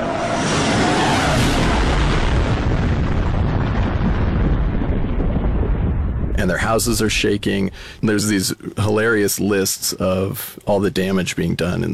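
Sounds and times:
sonic boom from supersonic jet: 0.0 - 7.9
speech: 6.4 - 11.9.

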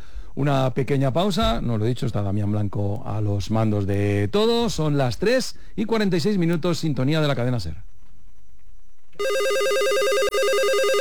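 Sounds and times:
speech: 0.4 - 7.9, 9.2 - 9.5
telephone ringing with electronic warbling trill: 9.2 - 11.0.

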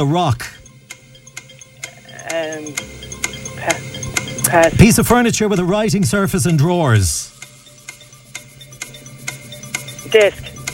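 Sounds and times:
speech: 0.0 - 0.6, 2.3 - 3.0, 3.6 - 7.4, 10.1 - 10.4
clock ticking in the studio: 0.0 - 10.7.

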